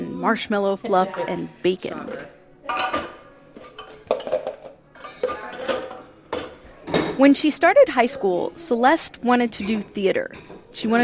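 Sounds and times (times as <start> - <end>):
speech: 0.2 - 3.0, 7.2 - 11.0
dishes and cutlery clattering as breakfast is cleared in a home kitchen in Vestavia Hills: 1.1 - 7.3, 9.6 - 11.0.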